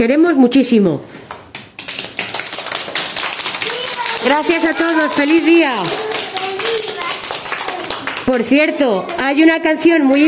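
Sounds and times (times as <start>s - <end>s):
speech: 0.0s - 1.1s, 4.2s - 6.0s, 8.3s - 10.2s
audience applause honouring mothers on their day: 1.3s - 8.5s.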